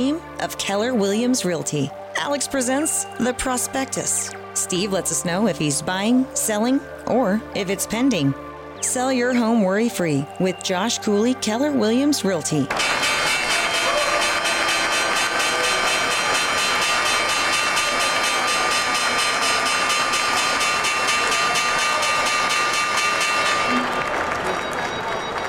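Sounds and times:
speech: 0.0 - 13.2
loud signal or alarm bell ringing: 12.7 - 25.4.

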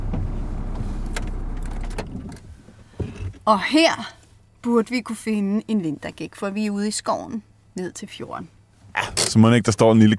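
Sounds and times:
car engine idling and switched off: 0.0 - 3.2
speech: 3.5 - 10.1.

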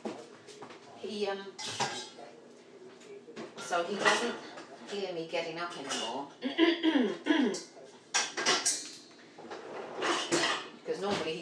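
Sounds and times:
speech: 1.0 - 1.8, 3.7 - 7.8
dish being put into a dishwasher: 1.6 - 2.1, 3.6 - 4.4, 8.2 - 11.3.

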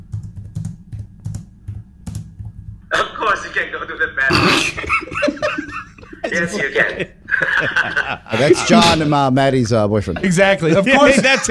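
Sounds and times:
typing on a computer keyboard: 0.0 - 2.8
speech: 2.9 - 5.6, 6.2 - 11.4
laughter: 4.8 - 9.1, 10.2 - 11.4.

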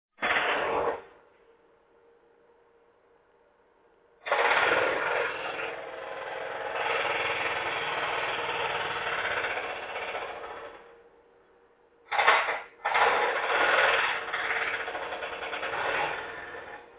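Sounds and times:
jackhammers: 0.1 - 1.1, 4.2 - 10.9, 12.1 - 16.9.

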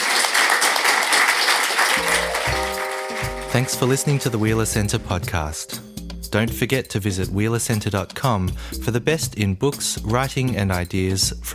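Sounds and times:
audience round of applause: 0.0 - 4.5
low musical notes: 2.0 - 7.9
speech: 3.6 - 11.5.

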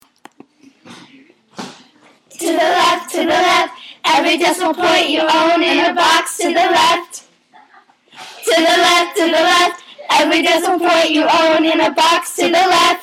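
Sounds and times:
song about converting decimals: 2.3 - 7.3, 8.1 - 13.0.

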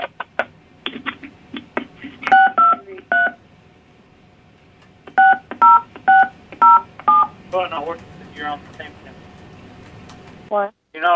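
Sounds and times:
phone number keyed in on a touch-tone keypad: 2.3 - 3.4, 5.2 - 7.3.

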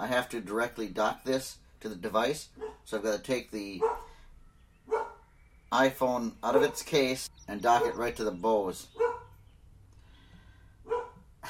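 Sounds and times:
speech: 0.0 - 4.0, 5.7 - 9.0
dog barking: 2.6 - 2.8, 3.8 - 4.1, 4.9 - 5.2, 9.0 - 9.4, 10.9 - 11.2.

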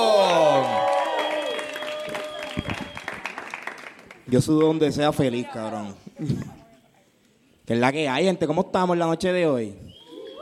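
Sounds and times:
audience applause: 0.0 - 4.6
speech: 4.3 - 6.4, 7.7 - 9.8.

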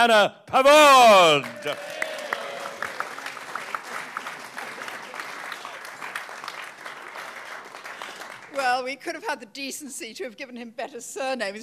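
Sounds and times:
speech: 0.0 - 2.0, 8.6 - 11.6
audience applause: 1.1 - 8.6.

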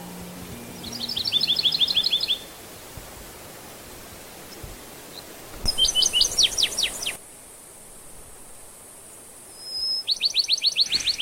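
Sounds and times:
Bachman's sparrow song: 0.0 - 3.5, 4.3 - 7.2, 9.5 - 11.2.

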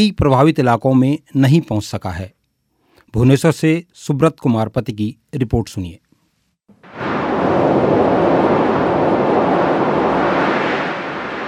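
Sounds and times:
speech: 0.0 - 2.4, 3.1 - 6.0
Cyclone Titli roar on the Odisha and Andhra Pradesh coast: 6.8 - 11.4.

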